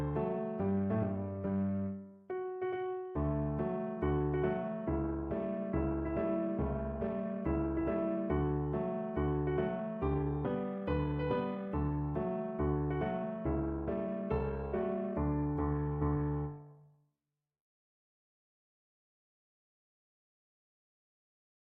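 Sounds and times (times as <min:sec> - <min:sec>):
music: 0:00.0 - 0:17.0.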